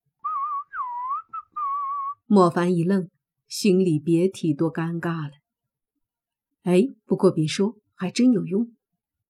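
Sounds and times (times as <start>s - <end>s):
soft whistling: 0.2s - 2.3s
speech: 2.3s - 5.4s, 6.6s - 8.8s.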